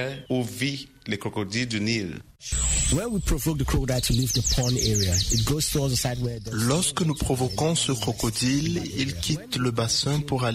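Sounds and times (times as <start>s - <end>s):
speech: 0.0s - 10.5s
birds singing at sunset: 2.5s - 10.5s.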